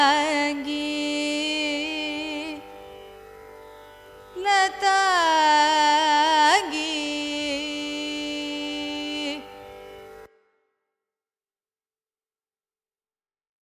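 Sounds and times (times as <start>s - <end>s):
carnatic music in raga lathangi: 0.0s - 10.6s.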